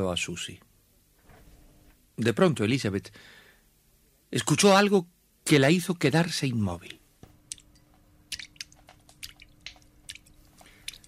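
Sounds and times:
speech: 0:00.0 - 0:00.7, 0:02.2 - 0:03.4, 0:04.3 - 0:07.0
water drops dripping into liquid: 0:07.3 - 0:11.0.

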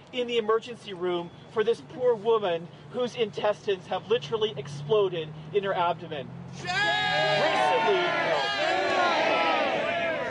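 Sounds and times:
speech: 0:00.1 - 0:08.7
boisterous crowd shouting at street protest: 0:06.6 - 0:10.2.

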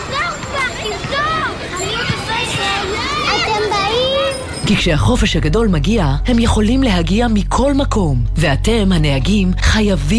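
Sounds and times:
children shouting at play: 0:00.0 - 0:04.6
speech: 0:04.7 - 0:10.1.

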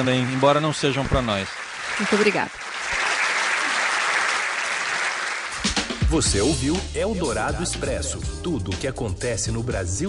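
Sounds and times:
speech: 0:00.0 - 0:02.7, 0:06.1 - 0:10.0
crowd applauding: 0:00.0 - 0:06.3.

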